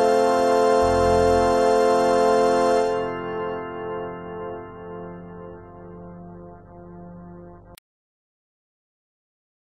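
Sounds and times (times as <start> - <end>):
solo music: 0.0 - 7.8.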